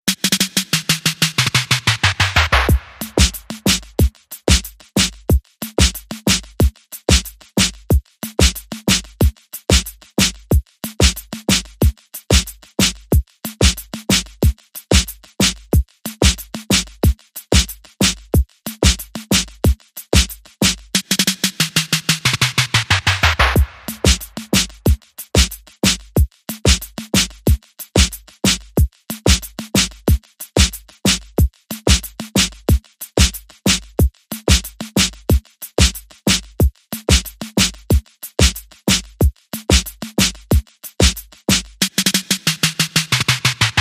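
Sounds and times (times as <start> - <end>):
leather drum beat: 0.1 - 43.7.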